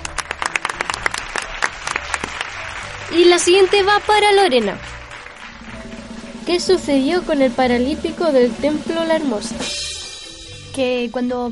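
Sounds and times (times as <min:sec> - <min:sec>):
audience applause: 0:00.0 - 0:06.5
speech: 0:03.1 - 0:04.9, 0:06.5 - 0:09.8, 0:10.8 - 0:11.4.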